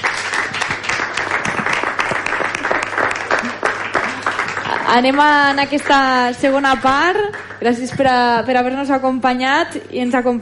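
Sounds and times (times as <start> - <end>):
audience applause: 0.0 - 6.2, 6.9 - 7.7
speech: 4.9 - 10.3.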